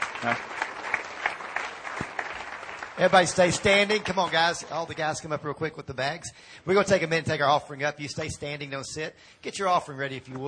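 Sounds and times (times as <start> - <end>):
church congregation clapping along in rhythm: 0.0 - 5.3
speech: 0.2 - 0.6, 3.0 - 10.4.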